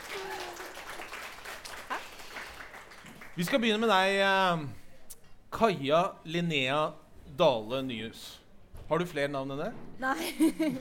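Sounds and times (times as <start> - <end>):
applause: 0.0 - 4.1
speech: 3.4 - 4.8, 5.6 - 10.7.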